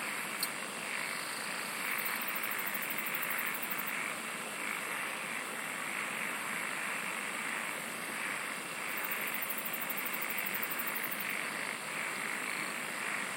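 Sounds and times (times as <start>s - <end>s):
insect chorus: 0.0s - 13.3s
steady hiss: 0.0s - 13.3s
sharp click: 0.4s - 0.6s.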